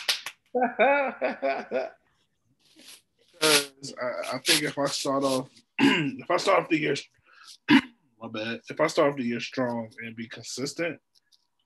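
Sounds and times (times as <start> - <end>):
hand claps: 0.0 - 0.5
speech: 0.5 - 2.0, 3.8 - 11.1
laughter: 0.6 - 2.0.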